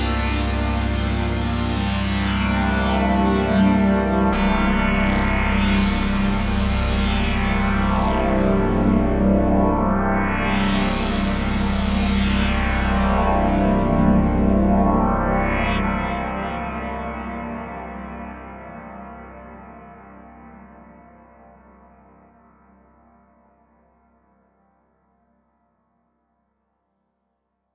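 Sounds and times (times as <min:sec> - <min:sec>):
string patch modified with filter sweep: 0:00.0 - 0:18.0.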